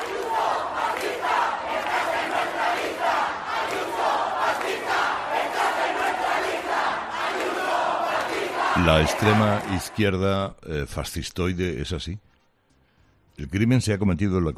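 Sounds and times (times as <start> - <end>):
protesters chanting at a street demonstration: 0.0 - 10.2
speech: 8.8 - 12.3, 13.4 - 14.5.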